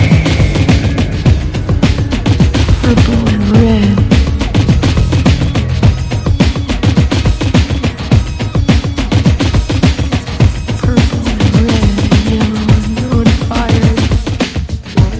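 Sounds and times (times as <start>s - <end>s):
drums: 0.0s - 15.1s
vocals: 2.7s - 4.5s, 10.2s - 15.1s.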